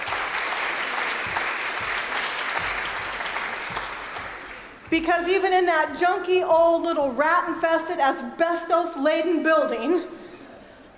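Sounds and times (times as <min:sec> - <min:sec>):
crowd clapping: 0:00.0 - 0:05.0
speech: 0:04.9 - 0:10.2.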